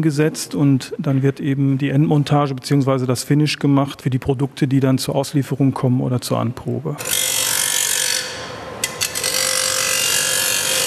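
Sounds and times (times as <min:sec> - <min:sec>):
speech: 0:00.0 - 0:07.3
grinding machine sanding a prosthesis socket: 0:07.0 - 0:10.8.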